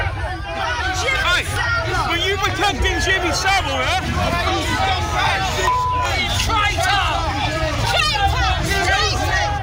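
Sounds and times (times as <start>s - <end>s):
angry crowd shouting outside Parliament: 0.0s - 9.6s
speech: 2.4s - 7.2s.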